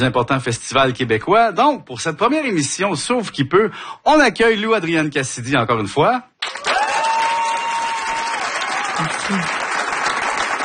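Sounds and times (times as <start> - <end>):
speech: 0.0 - 6.6, 9.0 - 9.6
studio audience applauding during a television show: 6.4 - 10.6.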